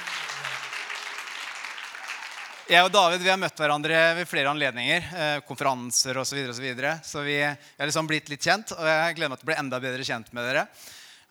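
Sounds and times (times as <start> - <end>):
church audience applause: 0.0 - 3.1
speech: 2.7 - 11.2.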